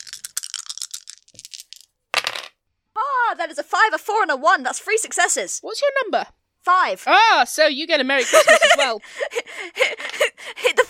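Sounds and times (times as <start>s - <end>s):
three dice rolled during a tabletop roleplaying game: 0.0s - 2.6s
speech: 3.4s - 10.0s.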